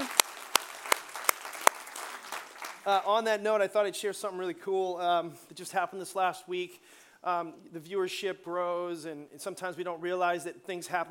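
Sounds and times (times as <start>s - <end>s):
church congregation hand claps welcoming online and cable viewers: 0.0s - 2.8s
speech: 2.8s - 11.1s.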